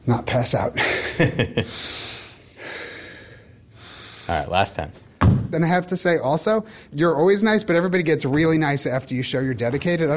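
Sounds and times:
speech: 0.1 - 2.1, 4.3 - 10.1
deep breath: 0.9 - 4.5, 6.6 - 7.0.

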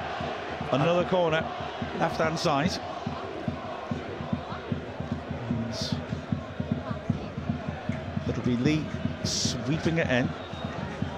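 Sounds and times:
stadium crowd of football fans roaring: 0.0 - 11.1
speech: 0.7 - 3.2, 8.5 - 10.5.

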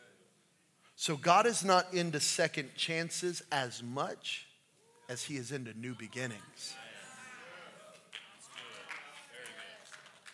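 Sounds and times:
speech: 1.0 - 4.5, 5.1 - 6.9
weak scattered audience clapping: 7.8 - 10.3.

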